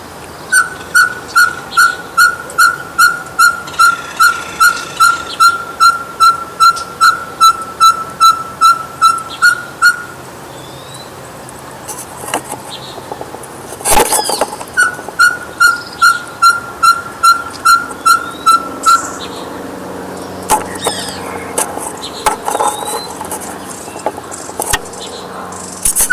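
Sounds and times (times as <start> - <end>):
Ferruginous pygmy owl soft whistled toots: 0.5 - 11.1, 14.0 - 19.4, 20.5 - 21.7, 25.7 - 26.1.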